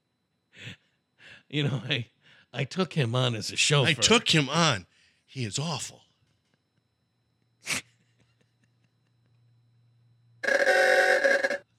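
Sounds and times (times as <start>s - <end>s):
speech: 1.5s - 6.1s
old car horn honking: 10.4s - 11.6s.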